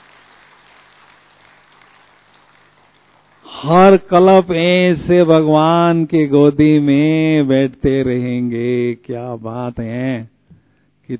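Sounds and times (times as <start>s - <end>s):
audience clapping: 0.0s - 3.1s
speech: 3.6s - 10.3s.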